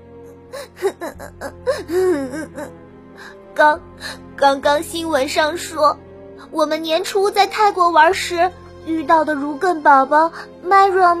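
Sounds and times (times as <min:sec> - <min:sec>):
sad crying and whimpering: 0:00.4 - 0:03.4
speech: 0:00.6 - 0:02.8, 0:03.6 - 0:11.1.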